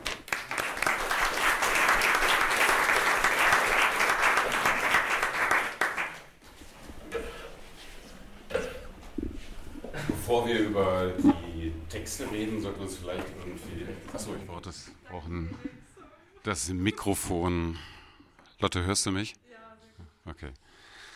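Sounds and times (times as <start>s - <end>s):
audience applause: 0.0s - 6.4s
speech: 10.4s - 15.8s, 16.4s - 18.0s, 18.6s - 19.4s, 20.4s - 20.7s.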